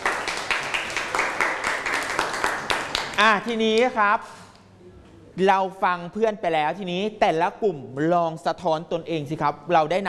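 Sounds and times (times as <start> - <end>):
classroom applause: 0.0 - 3.3
speech: 3.2 - 4.5, 5.4 - 10.0.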